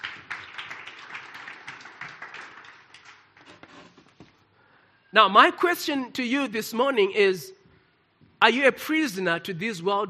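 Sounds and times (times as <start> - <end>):
audience clapping hands: 0.0 - 3.8
speech: 5.1 - 7.6, 8.4 - 10.0.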